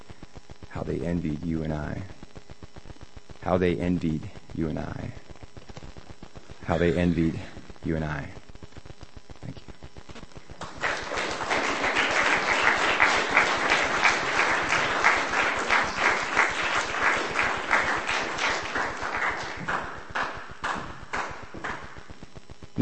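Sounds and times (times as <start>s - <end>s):
speech: 0.7s - 2.2s, 3.4s - 5.2s, 6.7s - 8.4s
audience clapping after a poetry reading: 10.5s - 22.1s.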